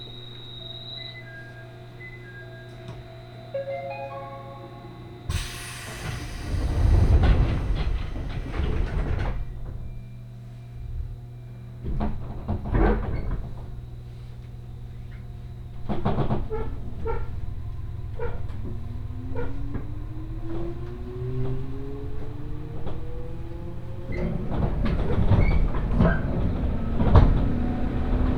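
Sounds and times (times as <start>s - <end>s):
beeping chime tones on Senseki Line local train: 0.4s - 5.4s
rising Senseki Line train motor whine while accelerating: 4.8s - 10.2s, 11.8s - 28.3s
loud hiss: 5.3s - 8.8s.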